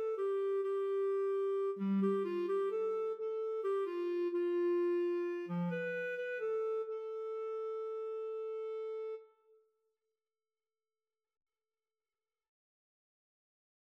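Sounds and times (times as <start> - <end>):
Bb clarinet: 0.0 - 9.6.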